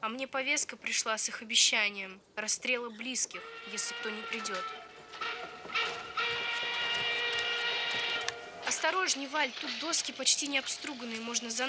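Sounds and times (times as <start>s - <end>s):
speech: 0.0s - 6.0s, 8.8s - 11.6s
moving train rumbling heard from inside freight wagon: 3.3s - 11.6s
faint high metallic whine: 3.4s - 11.6s.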